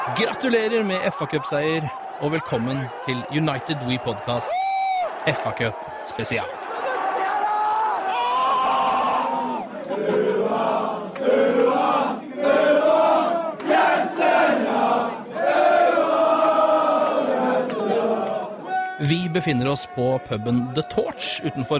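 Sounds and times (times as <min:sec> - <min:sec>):
speech: 0:00.1 - 0:06.6, 0:19.3 - 0:21.7
football supporters chanting in a pub: 0:05.9 - 0:19.0.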